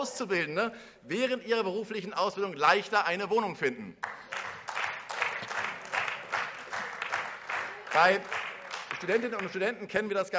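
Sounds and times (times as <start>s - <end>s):
speech: 0.0s - 4.4s, 8.0s - 8.4s, 9.0s - 10.3s
audience applause: 4.0s - 9.8s.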